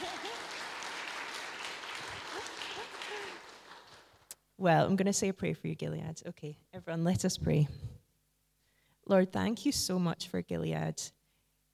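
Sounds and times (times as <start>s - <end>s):
round of applause: 0.0s - 4.3s
speech: 4.6s - 7.9s, 9.1s - 11.2s.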